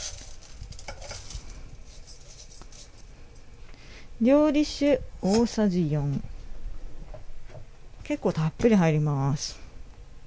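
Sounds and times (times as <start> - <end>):
uncooked rice grains pattering into the inner pot of a rice cooker: 0.0 - 3.5
speech: 4.2 - 6.3, 8.1 - 9.6.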